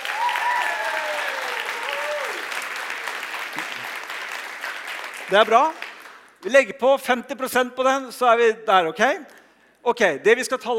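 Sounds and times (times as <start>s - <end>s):
audience test applause, clapping fast: 0.0s - 6.6s
speech: 5.3s - 5.8s, 6.4s - 10.7s.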